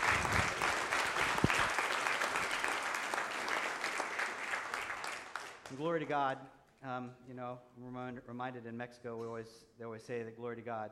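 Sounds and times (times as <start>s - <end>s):
audience applause: 0.0s - 5.8s
speech: 5.8s - 10.8s.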